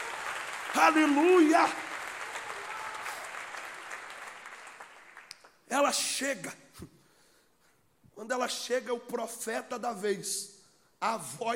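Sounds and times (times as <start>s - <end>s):
crowd applauding: 0.0s - 5.6s
speech: 0.8s - 1.8s, 5.7s - 7.0s, 8.2s - 11.5s.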